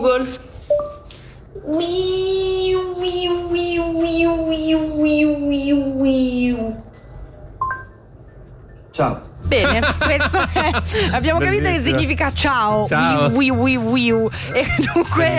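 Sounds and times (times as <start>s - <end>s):
speech: 0.0s - 0.5s, 1.6s - 2.4s, 9.0s - 15.3s
human imitation of Japanese cicada: 1.6s - 6.8s
laughter: 9.5s - 11.6s, 14.4s - 15.3s.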